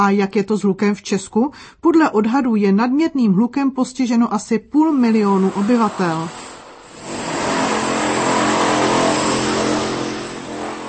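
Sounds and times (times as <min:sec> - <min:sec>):
speech: 0:00.0 - 0:06.4
construction machine engine roaring: 0:06.4 - 0:10.8.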